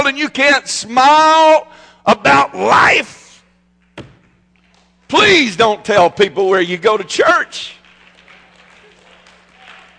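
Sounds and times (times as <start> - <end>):
speech: 0.0 - 3.2, 5.1 - 7.8
half-hearted clapping from audience: 7.8 - 9.9.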